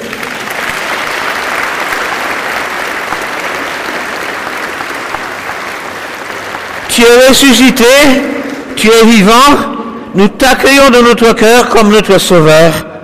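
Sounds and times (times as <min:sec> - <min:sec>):
audience applause: 0:00.0 - 0:08.7
speech: 0:07.0 - 0:12.9.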